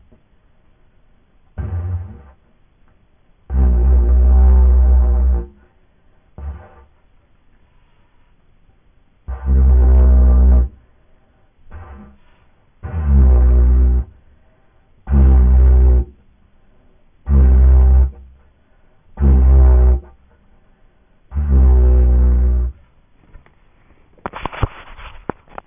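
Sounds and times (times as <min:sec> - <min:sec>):
didgeridoo: 0:01.6 - 0:02.4, 0:03.5 - 0:05.7, 0:06.4 - 0:07.0, 0:09.2 - 0:10.8, 0:11.7 - 0:14.3, 0:15.0 - 0:16.2, 0:17.2 - 0:18.5, 0:19.1 - 0:20.4, 0:21.3 - 0:22.9.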